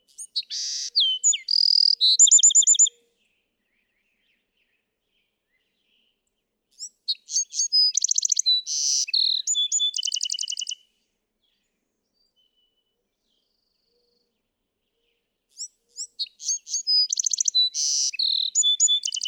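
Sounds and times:
Bewick's wren song: 0:00.0 - 0:03.0, 0:06.7 - 0:10.8, 0:15.5 - 0:19.2.

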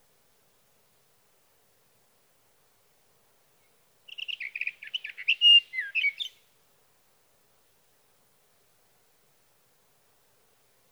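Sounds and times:
sage thrasher song: 0:04.1 - 0:06.3.

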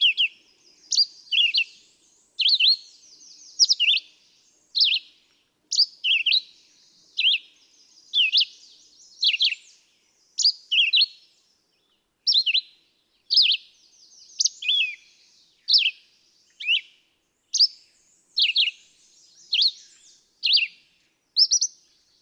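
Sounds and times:
red-eyed vireo singing in Quabbin Park Massachusetts: 0:00.0 - 0:04.2, 0:04.8 - 0:11.2, 0:13.3 - 0:16.9, 0:17.5 - 0:20.8.

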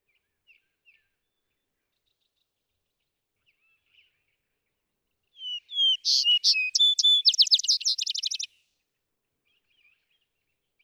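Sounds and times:
Vesper sparrow song: 0:05.4 - 0:08.5.

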